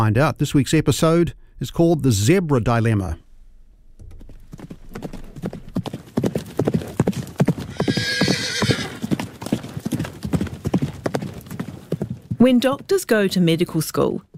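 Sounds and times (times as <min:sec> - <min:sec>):
speech: 0:00.0 - 0:03.2, 0:12.4 - 0:14.3
horse hooves clip-clopping: 0:03.8 - 0:14.3
horse whinnying: 0:07.6 - 0:09.2.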